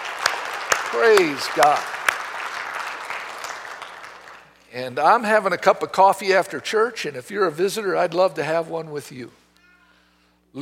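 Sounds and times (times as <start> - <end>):
audience applauding visitors: 0.0 - 4.6
speech: 0.9 - 1.9, 4.7 - 9.4.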